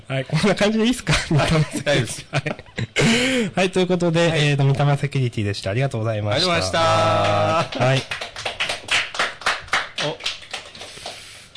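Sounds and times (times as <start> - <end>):
speech: 0.1 - 8.3
applause: 6.9 - 11.5.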